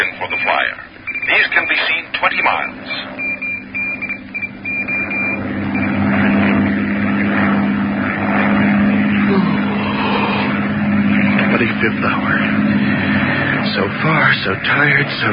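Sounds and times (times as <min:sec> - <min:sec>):
faint beeps: 0:00.0 - 0:02.1, 0:03.0 - 0:06.0
speech: 0:00.0 - 0:03.2, 0:11.8 - 0:13.1, 0:13.8 - 0:15.3
propeller airplane engine droning in flight: 0:00.0 - 0:15.3.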